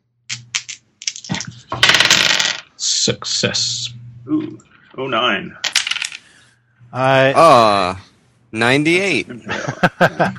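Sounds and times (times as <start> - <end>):
dice being rolled: 0.3 - 2.7, 5.6 - 6.3
speech: 3.1 - 5.7, 6.9 - 10.3
laughter: 9.3 - 10.3.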